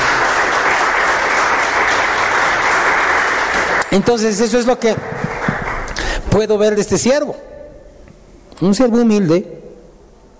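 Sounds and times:
audience applause: 0:00.0 - 0:06.2
speech: 0:03.9 - 0:05.2, 0:06.3 - 0:07.5, 0:08.6 - 0:09.6.

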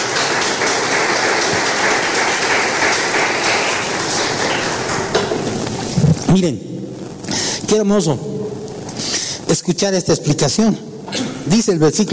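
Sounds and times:
applause: 0:00.0 - 0:05.5
speech: 0:06.3 - 0:06.7, 0:07.7 - 0:08.3, 0:09.6 - 0:12.1.

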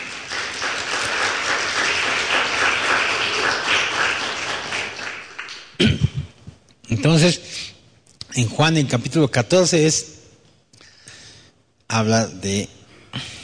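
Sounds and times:
audience applauding: 0:00.0 - 0:05.8
speech: 0:05.8 - 0:06.0, 0:06.9 - 0:07.5, 0:08.4 - 0:10.2, 0:12.0 - 0:13.3.

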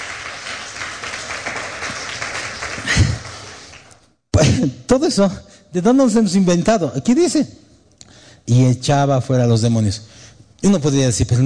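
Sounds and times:
audience applauding: 0:00.0 - 0:04.1
speech: 0:04.6 - 0:07.7, 0:08.4 - 0:11.4.

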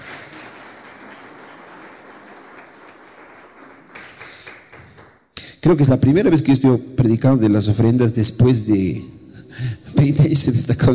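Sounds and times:
audience applause: 0:00.0 - 0:05.2
speech: 0:05.6 - 0:09.2, 0:10.0 - 0:10.9.

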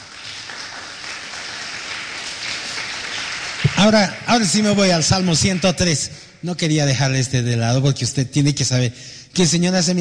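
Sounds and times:
audience applause: 0:00.0 - 0:05.8
speech: 0:03.8 - 0:09.9.

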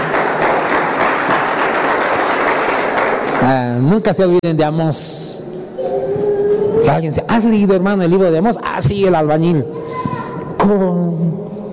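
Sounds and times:
audience applauding: 0:00.0 - 0:03.9
speech: 0:03.4 - 0:06.0, 0:06.8 - 0:11.4.

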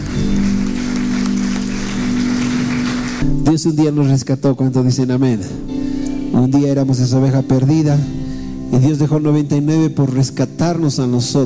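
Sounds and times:
audience applauding: 0:00.0 - 0:03.3
speech: 0:03.5 - 0:11.4.

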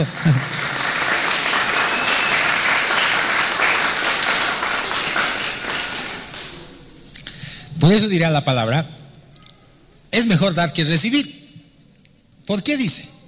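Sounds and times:
audience applauding: 0:00.0 - 0:06.9
speech: 0:07.9 - 0:09.0, 0:10.1 - 0:11.4, 0:12.5 - 0:13.2.

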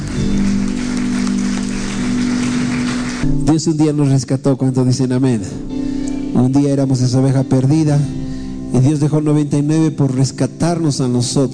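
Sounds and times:
audience applauding: 0:00.0 - 0:03.3
speech: 0:03.5 - 0:05.7, 0:06.3 - 0:11.5.

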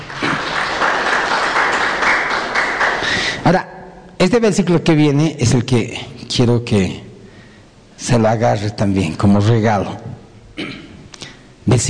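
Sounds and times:
audience applause: 0:00.0 - 0:03.4
speech: 0:03.5 - 0:07.0, 0:08.0 - 0:10.8, 0:11.7 - 0:11.8.

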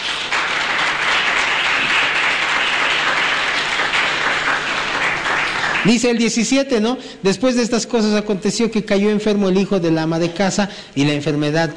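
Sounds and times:
audience applauding: 0:00.0 - 0:06.4
speech: 0:05.8 - 0:11.7.

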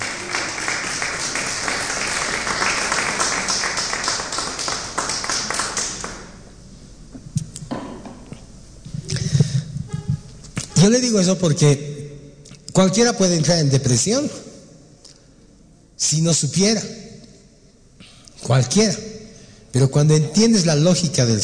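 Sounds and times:
loud crowd applause: 0:00.0 - 0:06.4
speech: 0:10.8 - 0:11.9, 0:12.8 - 0:14.5, 0:16.0 - 0:17.0, 0:18.5 - 0:19.1, 0:19.7 - 0:21.4.

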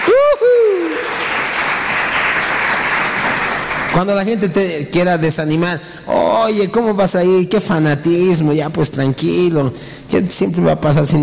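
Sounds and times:
loud sliding vocal whoop: 0:00.0 - 0:01.1
audience applause: 0:00.0 - 0:04.1
speech: 0:03.9 - 0:11.2.

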